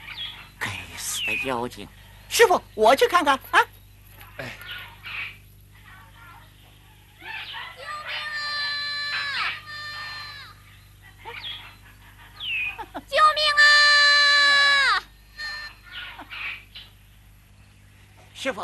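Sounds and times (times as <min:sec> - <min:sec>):
speech: 0:01.3 - 0:03.8, 0:04.4 - 0:04.6
child crying in a drama: 0:07.2 - 0:10.6, 0:13.2 - 0:16.3.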